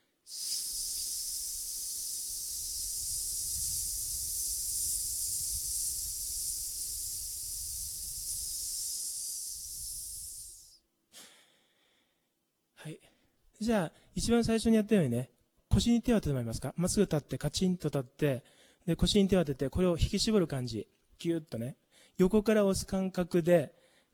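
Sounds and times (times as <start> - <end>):
long hissing exhale during an abdominal oblique exercise: 0.0 - 10.8
short soft breath sounds: 0.0 - 12.2, 18.4 - 18.9, 21.9 - 22.2, 23.8 - 24.1
speech: 13.6 - 24.1.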